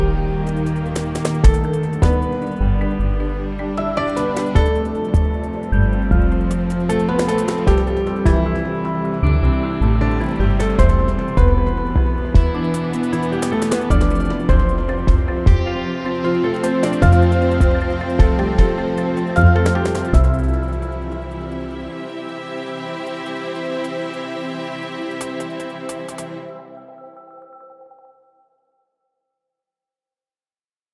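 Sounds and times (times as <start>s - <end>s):
jingle: 0.2s - 24.4s.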